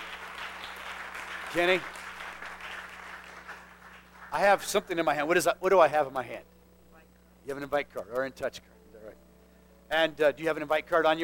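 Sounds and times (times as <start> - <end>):
church congregation applauding during a Sunday morning service: 0.0 - 5.0
low electrical hum: 0.0 - 11.2
speech: 1.5 - 2.0, 4.3 - 6.5, 7.4 - 9.2, 9.9 - 11.2.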